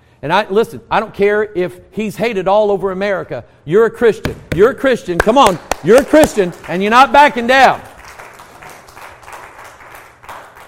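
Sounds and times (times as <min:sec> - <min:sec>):
speech: 0:00.2 - 0:07.9
audience clapping: 0:05.2 - 0:10.6.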